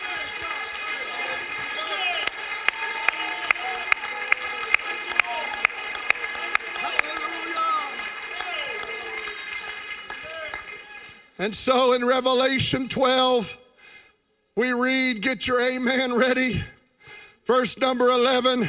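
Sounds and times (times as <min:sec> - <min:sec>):
crowd clapping hands: 0:00.0 - 0:11.4
speech: 0:11.4 - 0:13.6, 0:14.6 - 0:16.7, 0:17.5 - 0:18.6.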